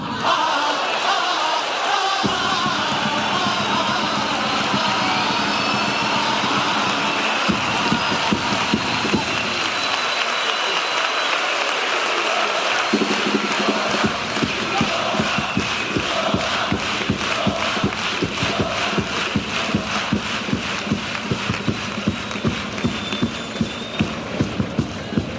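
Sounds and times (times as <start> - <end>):
large audience applauding loudly: 0.2 - 25.2
scattered cheers: 4.0 - 16.5.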